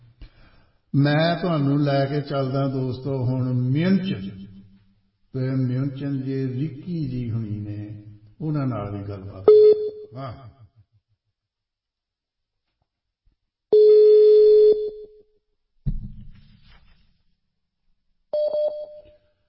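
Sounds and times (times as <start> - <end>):
speech: 0.9 - 4.5, 5.3 - 10.5
telephone ringback tone while a call is being placed: 13.7 - 15.1, 18.4 - 19.1.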